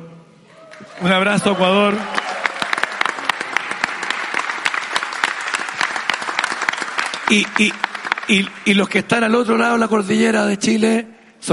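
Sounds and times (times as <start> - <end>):
audience applause: 0.6 - 8.8
speech: 0.8 - 2.2, 7.3 - 11.5.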